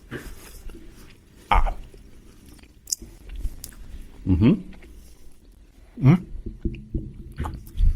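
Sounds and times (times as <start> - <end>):
someone chewing a tough chewy sweet while tasting it: 0.0 - 5.7.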